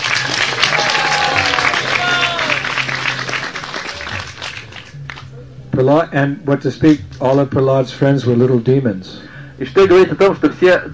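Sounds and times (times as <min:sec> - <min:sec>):
audience applause: 0:00.0 - 0:05.2
speech: 0:05.8 - 0:10.9.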